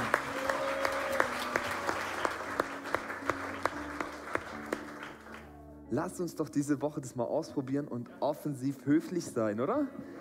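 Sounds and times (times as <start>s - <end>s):
audience applause: 0.0s - 5.6s
speech: 5.9s - 10.1s.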